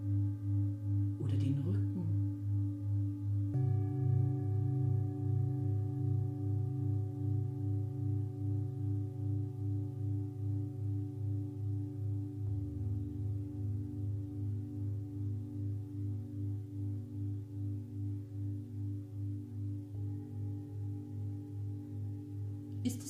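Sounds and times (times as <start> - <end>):
singing bowls ringing: 0.0 - 23.0.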